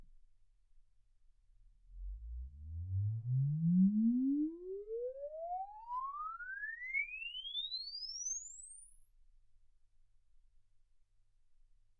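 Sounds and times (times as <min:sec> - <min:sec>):
exponential sine sweep from 10 Hz to 24 kHz: 0:02.0 - 0:09.4.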